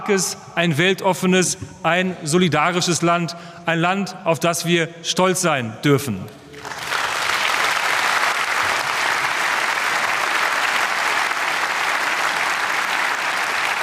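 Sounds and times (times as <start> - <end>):
speech: 0.0 - 6.4
audience applause after a speech: 6.5 - 13.8.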